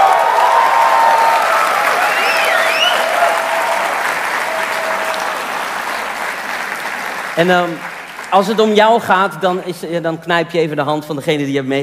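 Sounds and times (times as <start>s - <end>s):
thunderous audience applause: 0.0s - 9.4s
speech: 7.4s - 11.8s.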